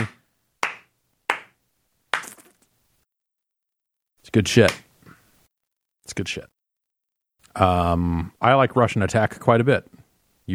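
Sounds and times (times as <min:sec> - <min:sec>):
one person clapping hands: 0:00.0 - 0:01.6, 0:02.2 - 0:02.6
speech: 0:04.3 - 0:04.8, 0:06.1 - 0:06.6, 0:07.6 - 0:10.5.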